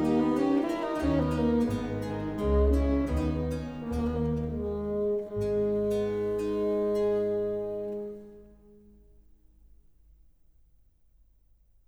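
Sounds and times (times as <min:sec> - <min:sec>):
instrumental music fragment: 0:00.0 - 0:09.3.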